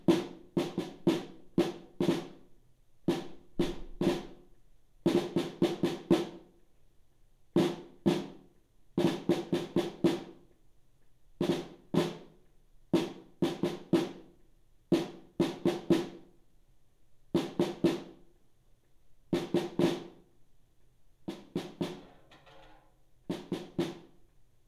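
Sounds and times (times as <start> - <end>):
snare drum solo: 0.0 - 2.5, 3.1 - 4.4, 5.1 - 6.5, 7.6 - 8.4, 9.0 - 10.4, 11.4 - 12.3, 13.0 - 14.3, 14.9 - 16.3, 17.4 - 18.2, 19.3 - 20.2, 21.3 - 22.6, 23.3 - 24.2.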